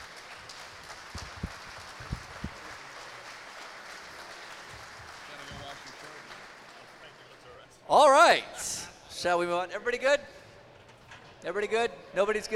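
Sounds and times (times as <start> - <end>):
crowd applause: 0.0 - 7.5
speech: 9.2 - 10.4, 11.4 - 12.5.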